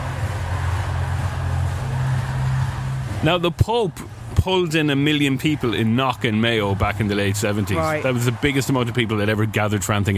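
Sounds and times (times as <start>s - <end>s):
huge concert crowd of millions roaring: 0.0s - 10.1s
speech: 3.2s - 10.1s.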